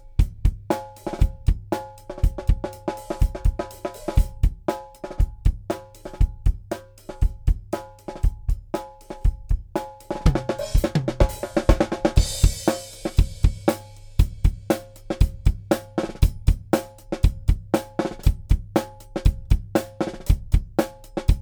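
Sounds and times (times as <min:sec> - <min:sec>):
drums in a rough mix: 0:00.0 - 0:21.4.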